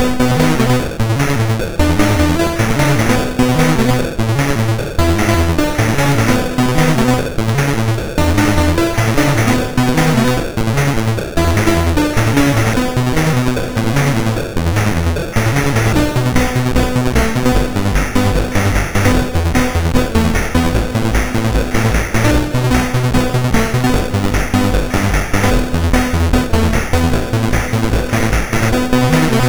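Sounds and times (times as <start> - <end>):
MOS6581R2 chip synth sample: 0.0 - 29.4.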